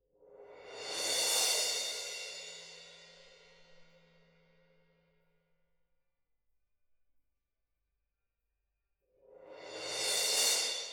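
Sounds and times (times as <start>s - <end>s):
percussion: 0.1s - 5.3s, 9.2s - 10.9s.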